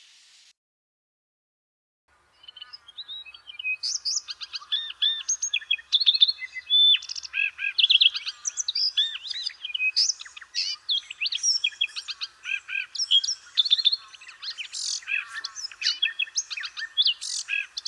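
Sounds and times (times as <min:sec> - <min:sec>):
redthroat song: 0:02.3 - 0:17.8.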